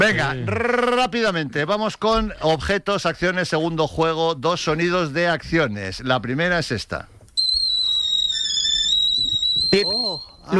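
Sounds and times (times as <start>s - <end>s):
speech: 0.0s - 7.1s, 9.7s - 10.5s
steam whistling from a kettle: 7.4s - 10.5s.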